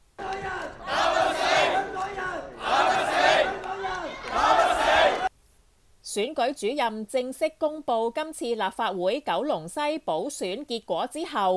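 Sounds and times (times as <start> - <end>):
supporters clapping and chanting slogans: 0.0 - 5.3
speech: 6.2 - 11.5.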